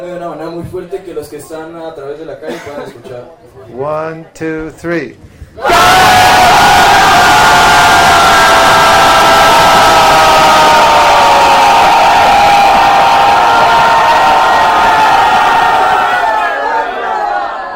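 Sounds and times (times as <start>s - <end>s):
speech: 0.0s - 7.6s
festival crowd loudly chanting: 5.6s - 17.7s.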